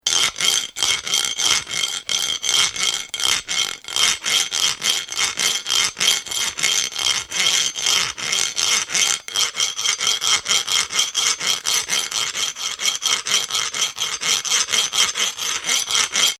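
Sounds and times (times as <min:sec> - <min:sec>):
metallic grating of a metal file: 0:00.0 - 0:16.3.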